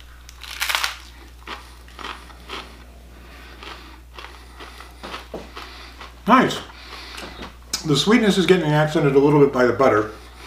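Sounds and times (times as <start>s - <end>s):
crunching Hard Bite Sweet Ghost Pepper potato chips from Canada: 0.0s - 7.8s
low hum: 0.0s - 10.4s
speech: 6.3s - 6.7s, 7.8s - 10.2s.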